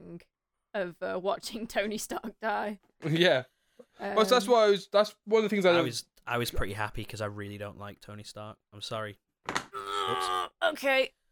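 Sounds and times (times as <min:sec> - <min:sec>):
speech: 0:00.2 - 0:11.2
chair breaking: 0:09.5 - 0:09.8.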